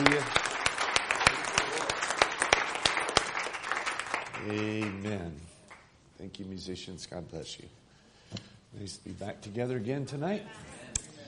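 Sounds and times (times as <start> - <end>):
audience clapping: 0.0 - 5.9
speech: 6.2 - 10.8.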